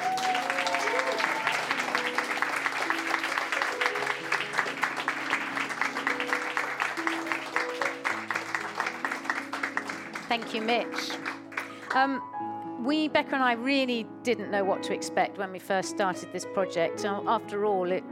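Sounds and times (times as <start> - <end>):
large audience clapping loudly: 0.0 - 12.2
speech: 10.3 - 11.2, 11.9 - 18.1.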